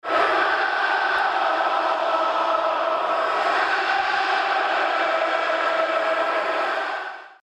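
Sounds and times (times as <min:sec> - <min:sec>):
chanting: 0:00.0 - 0:07.4.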